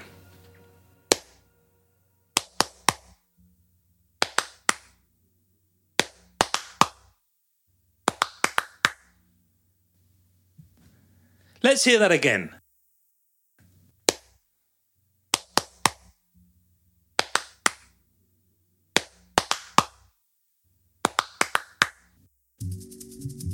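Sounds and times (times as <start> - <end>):
one person clapping: 1.1 - 1.4, 2.4 - 3.2, 4.2 - 5.0, 6.0 - 7.2, 8.1 - 9.2, 15.3 - 16.2, 17.2 - 18.0, 19.0 - 20.1, 21.0 - 22.2
speech: 11.6 - 12.6.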